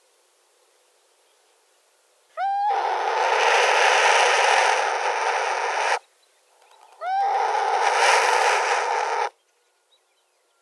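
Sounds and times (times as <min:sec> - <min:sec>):
Burhinus oedicnemus call: 0:02.4 - 0:06.0, 0:06.6 - 0:09.3.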